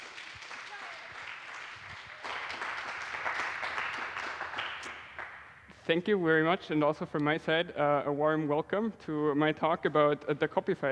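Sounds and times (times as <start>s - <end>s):
audience applause: 0.0s - 5.4s
speech: 5.9s - 10.9s.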